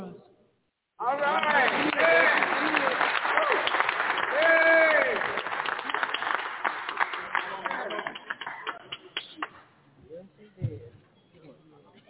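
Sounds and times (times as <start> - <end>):
audience clapping by hand: 1.0 - 9.7.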